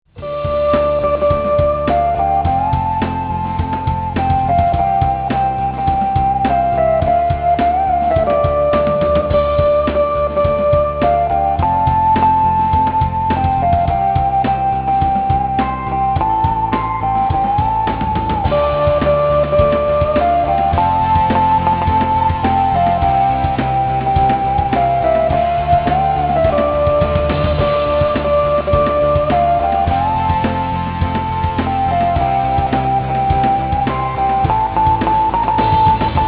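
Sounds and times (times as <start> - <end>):
dan bau: 0.0 - 36.2.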